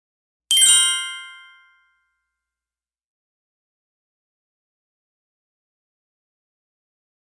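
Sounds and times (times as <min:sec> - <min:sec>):
twinkle sound: 0:00.5 - 0:02.0.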